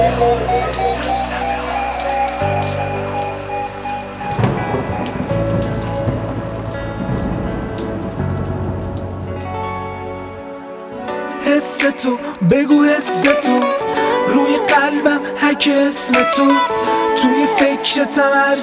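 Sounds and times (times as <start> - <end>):
thunder rumbling: 0.0 - 10.6
music track with sustained tones: 0.0 - 18.6
steady rain: 0.0 - 18.6
speech: 0.3 - 1.3, 11.8 - 18.6.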